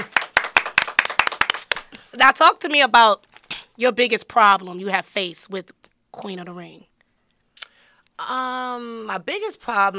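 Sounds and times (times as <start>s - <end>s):
round of applause hand claps: 0.0s - 2.0s
speech: 2.2s - 6.9s, 8.2s - 9.9s.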